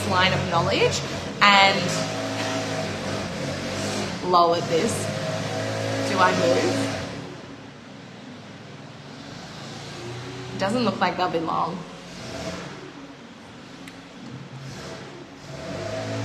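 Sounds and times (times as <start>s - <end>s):
speech: 0.1s - 2.2s, 4.3s - 5.1s, 6.1s - 7.0s, 10.6s - 12.4s
leaf blower outside the window: 1.0s - 7.1s, 15.5s - 16.2s.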